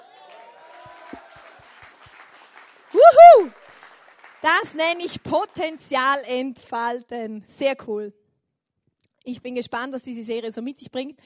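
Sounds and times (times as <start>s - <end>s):
audience applause: 0.0s - 4.7s
speech: 4.4s - 8.2s, 9.2s - 11.2s.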